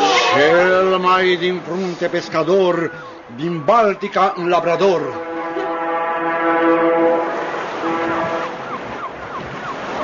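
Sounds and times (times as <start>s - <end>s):
speech: 0.4s - 5.2s
ship's siren whistling: 2.4s - 10.0s.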